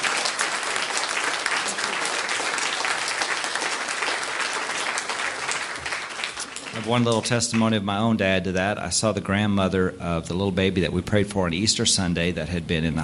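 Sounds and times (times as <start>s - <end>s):
audience clapping: 0.0s - 7.8s
speech: 6.8s - 13.0s.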